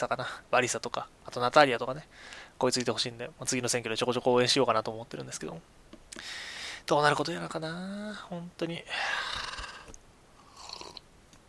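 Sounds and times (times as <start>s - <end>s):
speech: 0.0s - 9.5s
green tea being sipped: 9.4s - 11.0s.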